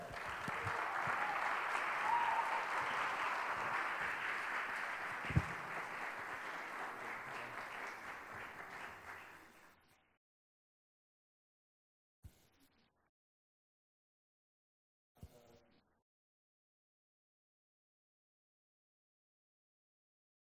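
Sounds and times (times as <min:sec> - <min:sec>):
crowd applauding to welcome a speaker: 0:00.0 - 0:09.7.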